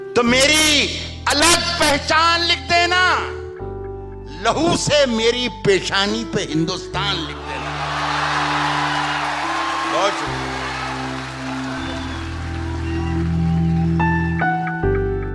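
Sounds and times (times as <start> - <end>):
speech: 0.2 - 3.4, 4.4 - 7.4
large audience cheering and applauding a poetry recital: 7.4 - 14.6.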